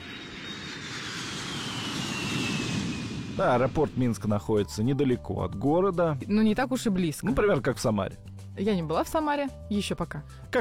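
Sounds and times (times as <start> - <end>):
airplane in flight engine roar: 0.0 - 5.3
speech: 3.4 - 10.5.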